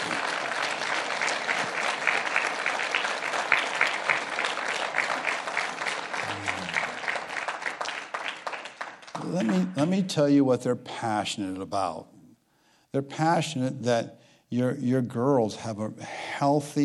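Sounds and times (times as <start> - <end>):
audience applause: 0.0 - 9.9
speech: 9.8 - 12.1, 12.9 - 16.8.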